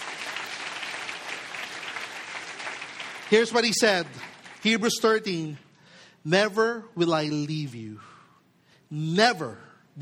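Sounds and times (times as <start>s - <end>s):
audience applause: 0.0s - 5.0s
speech: 3.3s - 5.6s, 6.2s - 8.1s, 8.9s - 10.0s.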